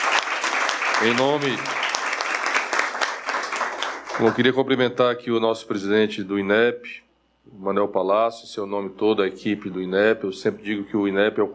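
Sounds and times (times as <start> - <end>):
audience applause: 0.0 - 4.6
speech: 1.0 - 1.8, 4.2 - 11.5.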